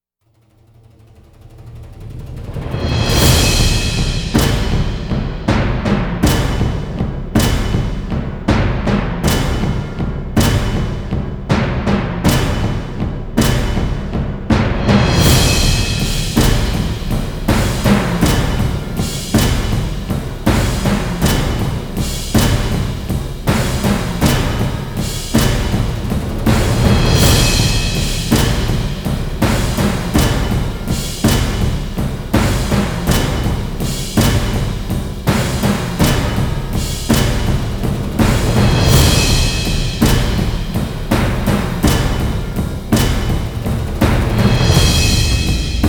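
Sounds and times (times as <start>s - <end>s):
drums: 0.7s - 45.8s.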